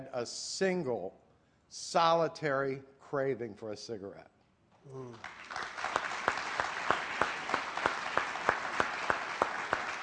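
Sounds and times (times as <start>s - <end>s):
speech: 0.1s - 5.6s
audience clapping: 5.1s - 10.0s.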